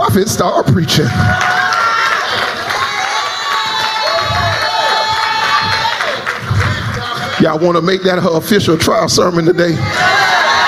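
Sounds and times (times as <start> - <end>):
speech: 0.1 - 1.6, 7.4 - 10.2
audience cheering and whoops: 1.0 - 7.4, 9.8 - 10.6
audience clapping: 1.3 - 7.6.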